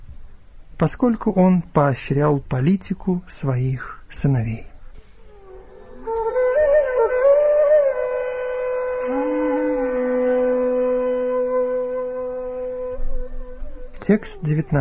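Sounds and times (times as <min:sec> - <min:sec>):
speech: 0:00.8 - 0:04.7, 0:14.1 - 0:14.7
several conch shells blowing: 0:05.3 - 0:14.2.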